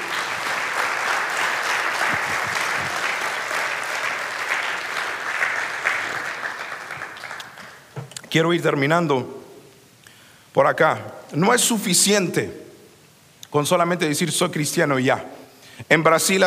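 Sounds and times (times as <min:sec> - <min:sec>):
audience applause: 0:00.0 - 0:08.0
speech: 0:08.4 - 0:09.4, 0:10.6 - 0:12.6, 0:13.5 - 0:16.4.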